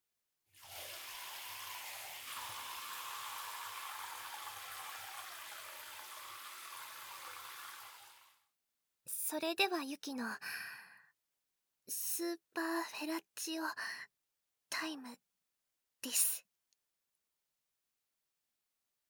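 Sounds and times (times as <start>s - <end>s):
rinsing soap foam off with warm water: 0.6s - 8.3s
speech: 9.3s - 10.7s, 11.9s - 14.1s, 14.8s - 15.3s, 16.0s - 16.5s.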